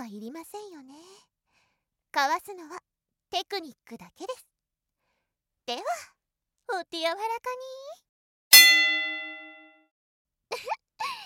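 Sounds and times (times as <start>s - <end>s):
speech: 0.1s - 1.4s, 2.1s - 4.5s, 5.7s - 9.2s
gong strike marking the start of a match: 8.6s - 9.7s.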